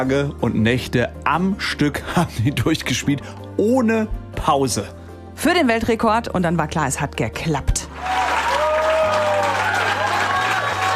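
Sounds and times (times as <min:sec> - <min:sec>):
speech: 0:00.0 - 0:08.2
crowd cheering and clapping: 0:07.9 - 0:10.9.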